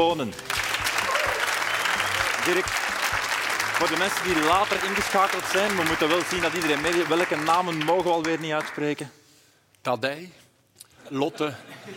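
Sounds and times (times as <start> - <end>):
speech: 0.0 - 0.6, 2.4 - 2.8, 3.8 - 9.2, 9.8 - 10.4, 11.1 - 11.9
audience applause: 0.4 - 9.0.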